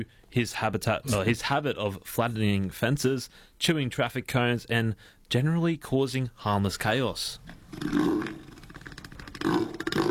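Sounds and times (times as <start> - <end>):
speech: 0.0 - 8.5
southern elephant seal bellowing: 7.7 - 10.0.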